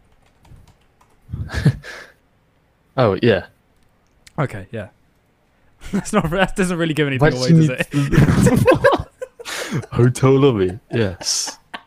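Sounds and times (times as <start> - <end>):
computer keyboard typing: 0.0 - 1.3
speech: 3.0 - 3.5, 4.4 - 5.0, 5.9 - 8.9, 9.7 - 11.6
laughter: 7.2 - 11.8.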